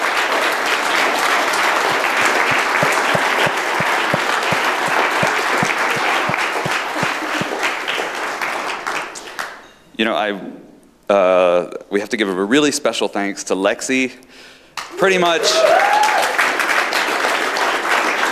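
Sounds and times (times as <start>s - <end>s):
crowd applause: 0.0s - 9.2s, 15.5s - 18.2s
speech: 10.0s - 16.1s.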